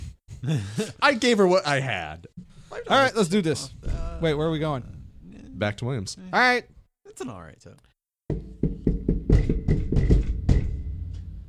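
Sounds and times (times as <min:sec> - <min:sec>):
speech: 0:00.4 - 0:05.0, 0:05.6 - 0:07.9
knocking and banging on a door: 0:08.3 - 0:11.4.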